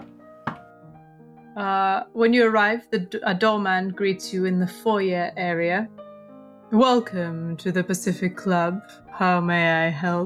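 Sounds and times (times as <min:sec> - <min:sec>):
knock at the door: 0:00.0 - 0:00.7
steady low tonal backdrop: 0:00.0 - 0:10.2
speech: 0:01.6 - 0:06.0, 0:06.7 - 0:10.2.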